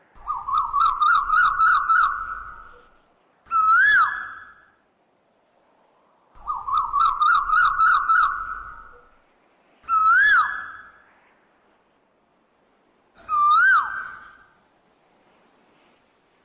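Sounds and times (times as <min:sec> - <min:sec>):
Asian koel swooping and rising-falling whistled calls: 0:00.2 - 0:02.9, 0:03.5 - 0:04.8, 0:06.4 - 0:09.2, 0:09.8 - 0:11.1, 0:13.2 - 0:14.6.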